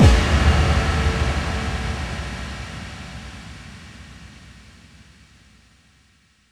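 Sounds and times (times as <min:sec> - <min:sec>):
bass drum FX kicks: 0:00.0 - 0:03.2.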